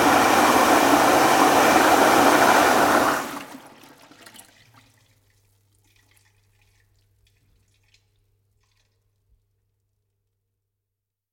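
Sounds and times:
urinal flushing: 0.0 - 8.0.

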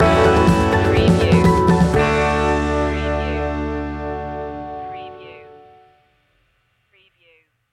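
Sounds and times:
music stinger: 0.0 - 6.0.

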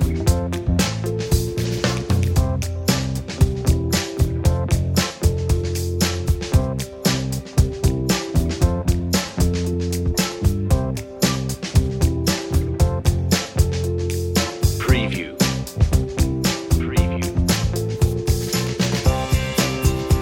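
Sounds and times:
relaxing groove music: 0.0 - 20.2.

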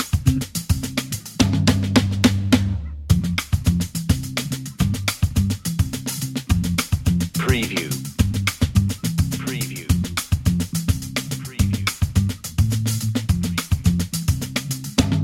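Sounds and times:
bass: 0.0 - 15.2
drums: 0.0 - 15.2.

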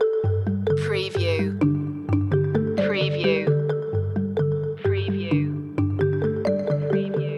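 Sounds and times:
marimba mood loop: 0.0 - 7.3.

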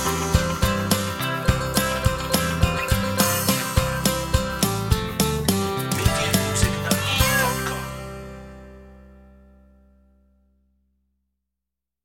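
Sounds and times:
nursery rhyme instrumental: 0.0 - 9.2.

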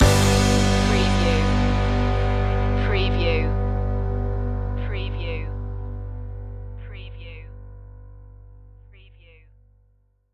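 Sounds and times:
piano pop stinger: 0.0 - 5.0.

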